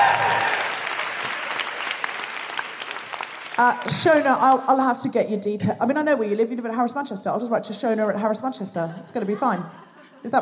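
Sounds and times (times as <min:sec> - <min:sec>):
audience cheering: 0:00.0 - 0:03.6
audience applause: 0:00.0 - 0:04.2
speech: 0:03.6 - 0:10.4.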